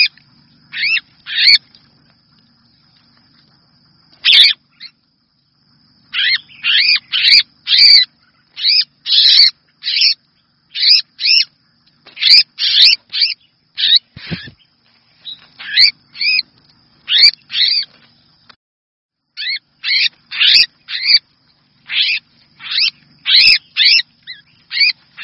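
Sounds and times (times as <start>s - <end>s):
red-whiskered bulbul distress call: 0.7s - 1.6s, 4.2s - 5.0s, 6.0s - 11.5s, 12.1s - 18.0s, 19.4s - 25.2s.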